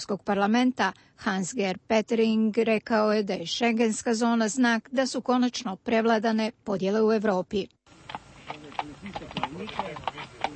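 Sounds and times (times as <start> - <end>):
speech: 0.0 - 10.5
Slovenian border police horses walking, hooves clip-clopping: 7.9 - 10.5.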